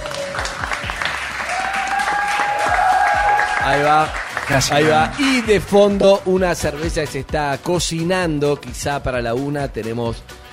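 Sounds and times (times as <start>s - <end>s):
applause: 0.0s - 6.0s
speech: 3.7s - 10.5s.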